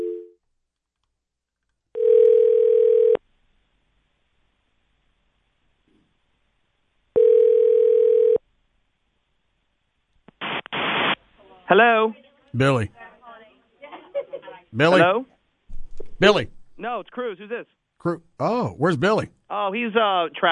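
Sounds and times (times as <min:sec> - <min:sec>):
telephone ringing tone in a handset on a call to a hotline: 0:00.0 - 0:00.4, 0:01.9 - 0:03.2, 0:07.2 - 0:08.4
speech: 0:11.7 - 0:13.0, 0:14.7 - 0:15.3, 0:16.2 - 0:20.5.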